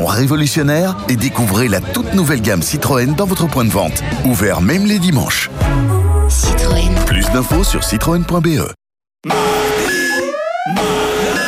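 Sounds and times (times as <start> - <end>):
speech: 0.2 - 9.8, 10.6 - 11.0
electronic reminder alarm beeping: 9.3 - 11.4.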